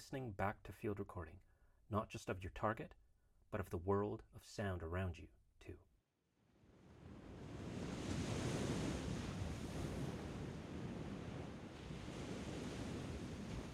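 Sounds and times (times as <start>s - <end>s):
speech: 0.0s - 5.9s
wind at Lamai Beach before a storm: 6.4s - 13.7s
ocean surf at Lamai Beach before a storm: 6.7s - 13.7s.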